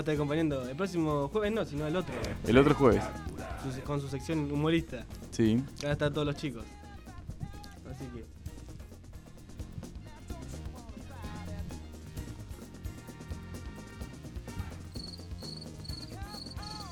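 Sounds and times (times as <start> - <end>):
speech: 0.0 - 6.8
music with steady beats and tones: 0.0 - 16.9
cricket chirping: 14.8 - 16.9.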